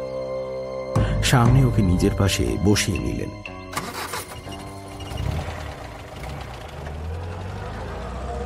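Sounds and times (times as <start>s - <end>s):
speech: 1.2s - 3.6s
car engine starting and running, audio drama sound effect: 3.6s - 8.4s.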